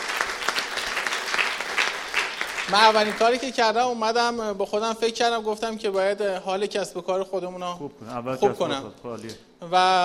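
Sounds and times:
applause at a talk with a teacher present: 0:00.0 - 0:03.5
speech: 0:02.7 - 0:10.0.

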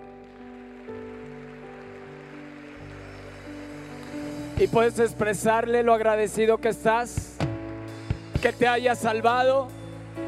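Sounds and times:
audience applauding loudly: 0:00.0 - 0:05.7
sustained keyboard chords: 0:00.0 - 0:10.2
speech: 0:04.6 - 0:07.3, 0:08.4 - 0:09.8.

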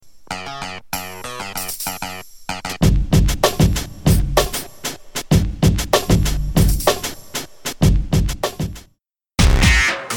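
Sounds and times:
snare drum: 0:03.0 - 0:10.1.

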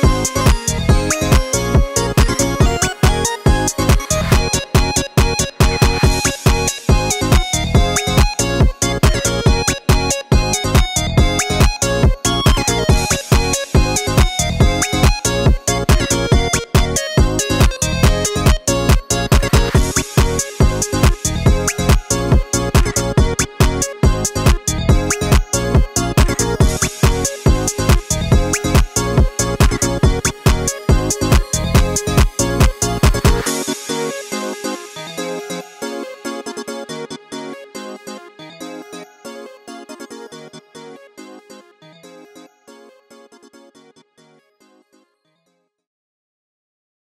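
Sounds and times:
pluggnb beat: 0:00.0 - 0:34.3.

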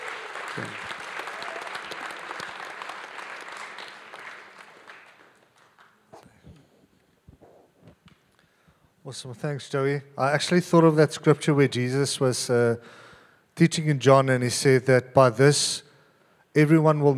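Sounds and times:
audience clapping: 0:00.0 - 0:06.9
speech: 0:00.6 - 0:00.9, 0:09.1 - 0:13.0, 0:13.6 - 0:15.9, 0:16.5 - 0:17.1.

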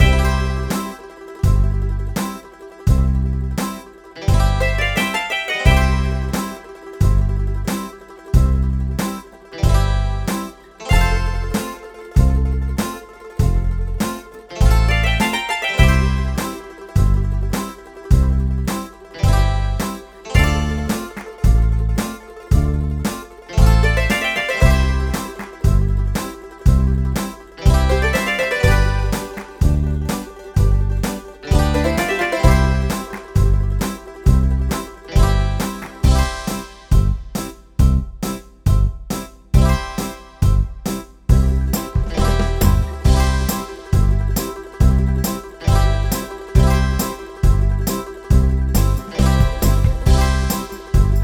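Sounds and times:
sirtaki folk dance music: 0:00.0 - 0:51.2.

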